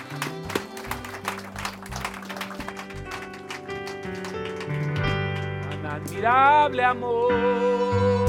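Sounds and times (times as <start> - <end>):
audience round of applause: 0.0 - 5.9
speech: 6.2 - 8.1.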